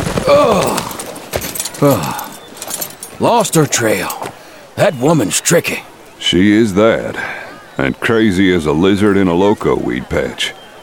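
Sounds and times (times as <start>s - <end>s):
horses of a posse clip-clopping into town: 0.0s - 4.4s
speech: 0.3s - 0.9s, 1.8s - 2.2s, 3.2s - 4.2s, 4.8s - 10.8s.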